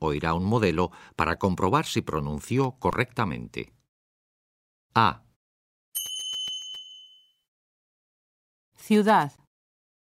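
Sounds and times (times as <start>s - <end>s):
speech: 0.0s - 3.8s, 4.9s - 5.2s, 8.9s - 9.4s
bell-like tone cue in a Spanish pronunciation exercise: 6.0s - 7.4s.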